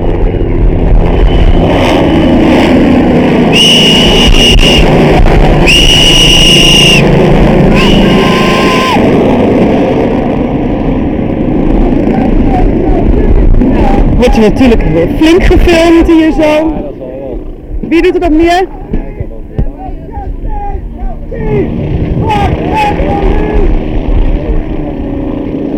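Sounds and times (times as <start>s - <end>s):
helicopter arriving: 0.0s - 25.7s
speech: 14.4s - 16.9s, 17.9s - 18.8s.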